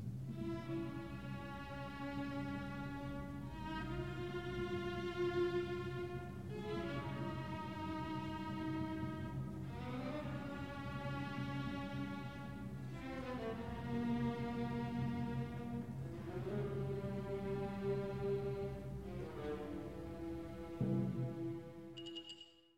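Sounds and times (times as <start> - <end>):
slow orchestral piece: 0.2 - 22.1.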